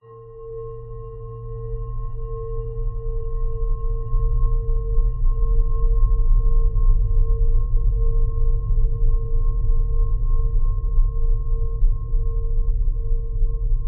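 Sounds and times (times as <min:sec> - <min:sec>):
low pitched bell resonation: 0:00.0 - 0:07.4
dark desolate eerie horror drone: 0:00.0 - 0:13.7.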